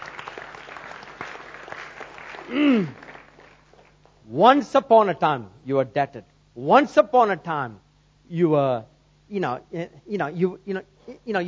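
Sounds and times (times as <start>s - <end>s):
audience applause: 0.0s - 3.9s
speech: 2.5s - 3.0s, 4.3s - 11.4s.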